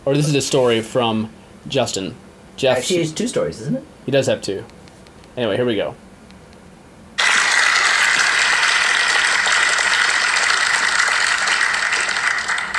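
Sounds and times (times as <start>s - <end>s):
speech: 0.0s - 4.8s, 5.4s - 6.0s
audience clapping: 7.2s - 12.7s.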